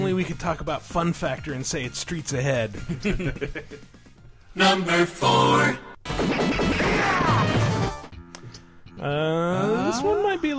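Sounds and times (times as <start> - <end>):
speech: 0.2 - 4.0, 4.6 - 7.6, 9.0 - 10.5
gunshot sound effect: 6.1 - 7.7.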